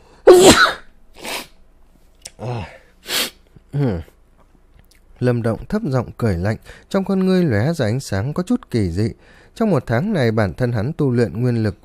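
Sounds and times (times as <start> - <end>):
person acting out a sneeze: 0.3 - 1.6, 2.4 - 3.9
speech: 5.2 - 11.8.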